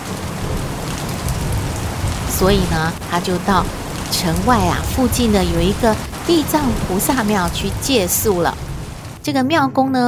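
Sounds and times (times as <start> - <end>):
deep low rumble: 0.0 - 9.3
steady rain hissing: 0.0 - 9.4
speech: 2.4 - 10.0.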